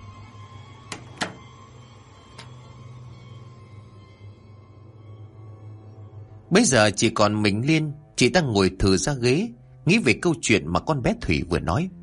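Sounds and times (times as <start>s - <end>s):
door closing: 0.8s - 2.6s
speech: 6.5s - 12.0s.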